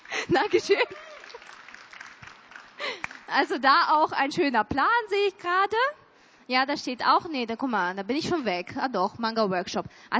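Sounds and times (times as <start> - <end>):
audience clapping: 0.0 - 3.6
speech: 0.3 - 1.6, 3.3 - 10.1.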